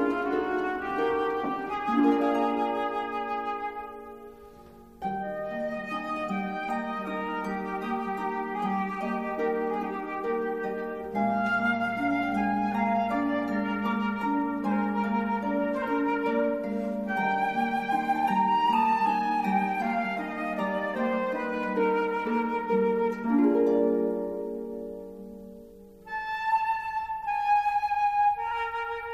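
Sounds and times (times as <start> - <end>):
flute: 0.0 - 29.1
harp: 0.0 - 29.1.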